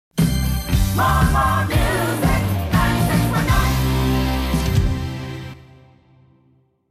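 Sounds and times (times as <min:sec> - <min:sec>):
radio jingle: 0:00.8 - 0:05.6.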